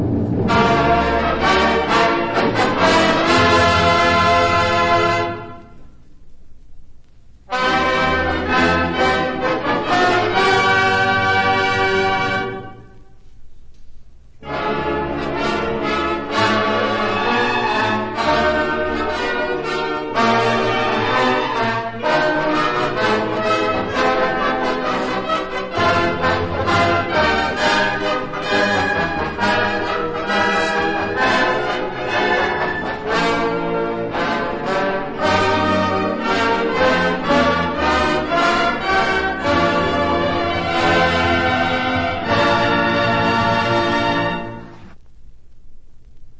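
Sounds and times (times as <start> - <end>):
fanfare: 0.2 - 5.8, 7.5 - 12.9, 14.4 - 44.8.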